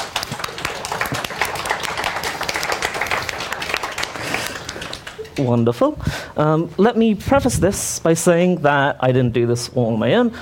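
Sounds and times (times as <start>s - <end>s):
audience round of applause: 0.0s - 5.4s
speech: 5.4s - 10.4s.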